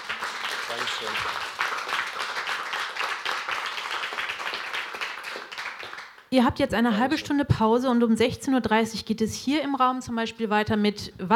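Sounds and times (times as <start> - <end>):
audience applause: 0.0 - 6.3
speech: 0.8 - 1.7, 6.3 - 11.3.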